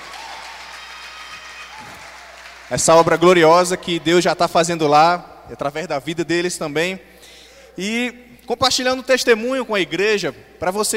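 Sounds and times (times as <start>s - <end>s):
audience applause: 0.0s - 4.8s
speech: 2.7s - 7.1s, 7.8s - 10.9s.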